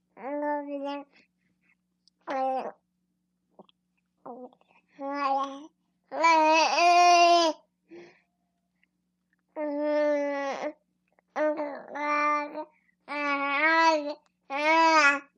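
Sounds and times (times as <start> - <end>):
four-month-old baby girl babbling indoors: 0.2 - 1.1, 2.3 - 2.8, 4.3 - 7.6, 9.6 - 10.8, 11.4 - 15.3.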